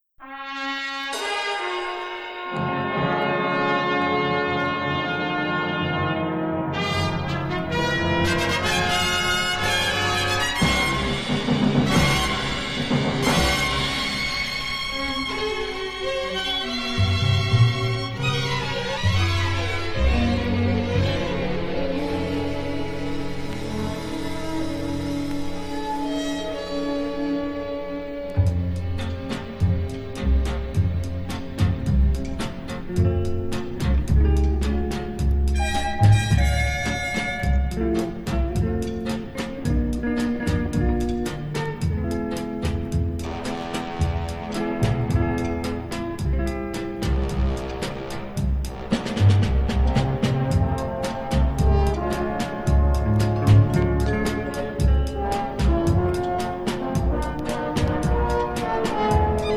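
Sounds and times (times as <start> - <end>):
strings: 0.2 - 59.5.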